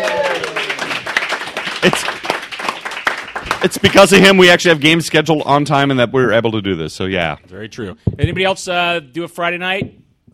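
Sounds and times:
crowd applause: 0.0s - 4.5s
speech: 1.8s - 2.2s, 3.6s - 10.0s.

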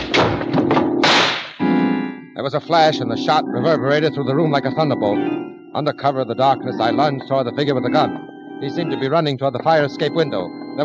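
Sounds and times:
people crashing to the floor: 0.0s - 1.5s
speech: 2.4s - 10.8s.

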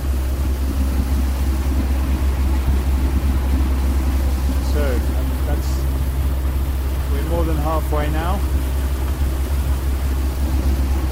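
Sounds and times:
ferry engine slowing down: 0.0s - 11.1s
water hissing: 0.0s - 11.1s.

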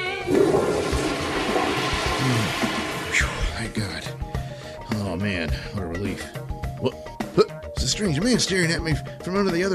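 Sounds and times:
toilet flushing: 0.2s - 4.4s
speech: 5.4s - 7.0s, 8.0s - 9.7s.

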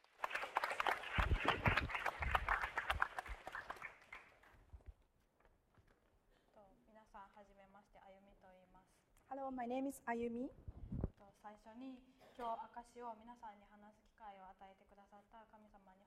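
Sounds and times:
audience applause: 0.0s - 4.6s
speech: 9.5s - 10.7s, 11.5s - 16.0s.

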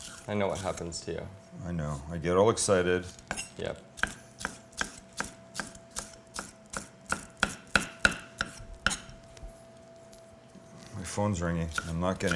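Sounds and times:
speech: 0.3s - 3.9s, 11.2s - 12.3s
knife dicing vegetables on cutting board: 3.0s - 9.2s, 11.7s - 12.3s.

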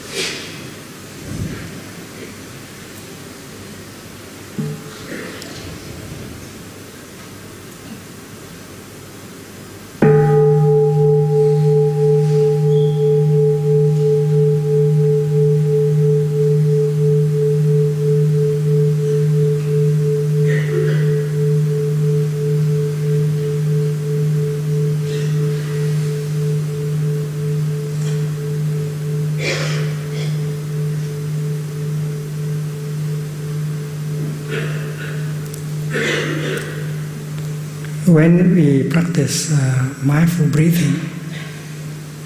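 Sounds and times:
meditation bell being invited: 10.0s - 42.1s
speech: 38.2s - 41.1s.

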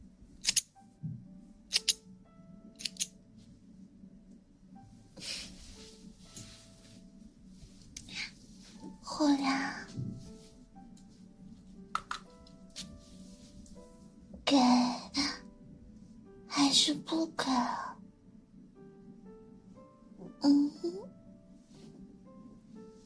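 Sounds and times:
low steady hum: 0.0s - 23.0s
ear cleaning and ear massage rubbing and rustling: 5.2s - 14.3s, 21.5s - 23.0s
sharp clicks and taps: 11.9s - 12.3s.

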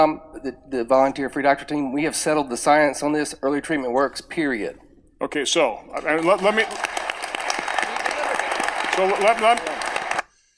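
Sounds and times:
speech: 0.0s - 7.0s, 9.0s - 9.7s
applause from a gallery audience: 6.0s - 10.2s.

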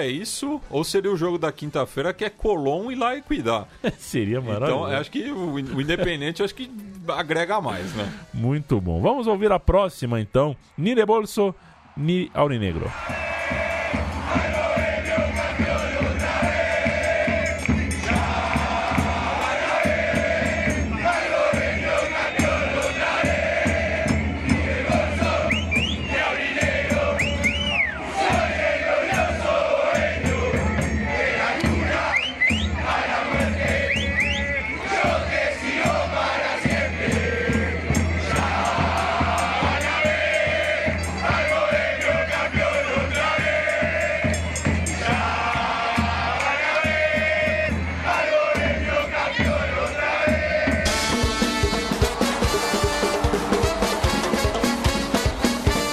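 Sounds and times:
speech: 0.0s - 13.6s
laughter: 3.7s - 4.6s
large crowd of football supporters chanting in a stadium: 12.9s - 55.9s.

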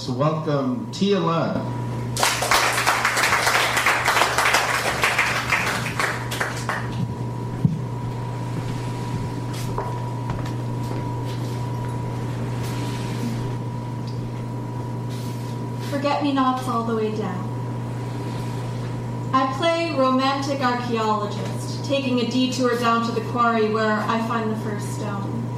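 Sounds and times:
speech: 0.0s - 1.9s, 16.2s - 17.5s, 19.6s - 25.4s
low constant hum: 0.0s - 25.5s
audience applause for a poet at a reading: 2.2s - 7.0s.

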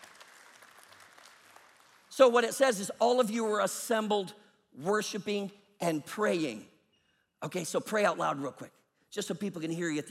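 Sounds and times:
crowd clapping hands: 0.0s - 2.2s
speech: 2.2s - 6.7s, 7.4s - 10.0s.

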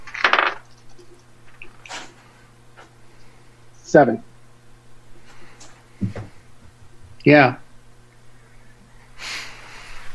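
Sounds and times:
two dice clattering onto a hard surface: 0.0s - 1.7s
speech: 3.9s - 4.3s, 7.2s - 7.6s.

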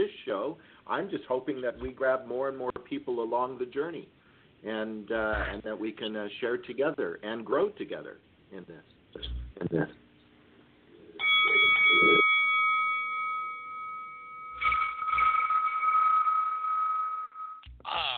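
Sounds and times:
speech: 0.4s - 10.0s
bell ringing sound effect: 11.2s - 17.6s.

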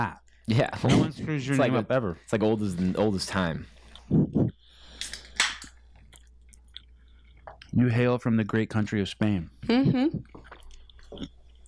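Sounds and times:
speech: 0.0s - 4.6s, 7.7s - 10.5s, 11.1s - 11.4s
chewing food while eating: 5.0s - 7.8s, 10.2s - 11.6s.

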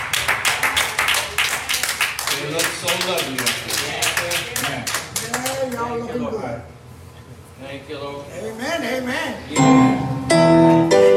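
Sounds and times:
audience round of applause: 0.0s - 5.8s
speech: 2.4s - 3.9s, 5.6s - 6.8s, 7.6s - 11.0s.

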